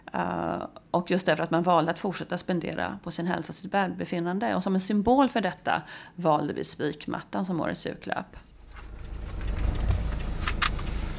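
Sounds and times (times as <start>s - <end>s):
speech: 0.2s - 8.5s
Mathem grocery delivery car engine and road rumble: 8.4s - 11.1s.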